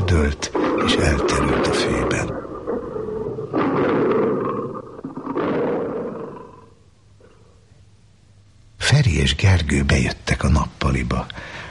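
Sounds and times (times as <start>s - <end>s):
predators growling loudly while attacking prey: 0.0s - 7.7s
speech: 9.3s - 11.6s.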